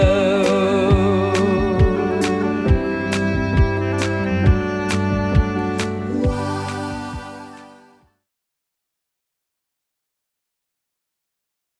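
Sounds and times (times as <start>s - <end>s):
clean 135 bpm music loop: 0.0s - 8.1s.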